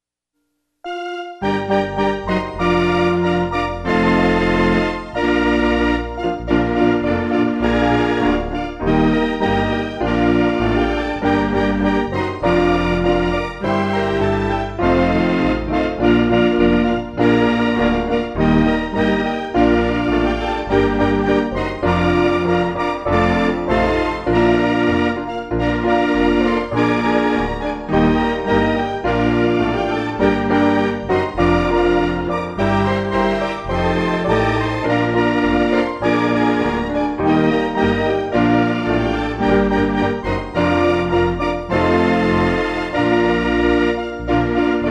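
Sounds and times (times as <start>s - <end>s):
instrumental music: 0.8s - 44.8s.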